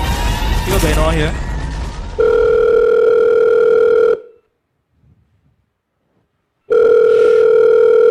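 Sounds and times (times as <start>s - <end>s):
speech: 0.7s - 1.5s
phone ringback tone: 2.2s - 4.4s, 6.7s - 8.0s.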